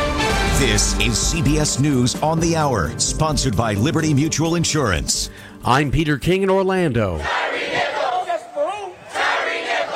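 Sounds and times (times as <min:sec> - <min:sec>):
speech: 0:00.6 - 0:07.9
protesters shouting in Memphis: 0:07.2 - 0:09.9.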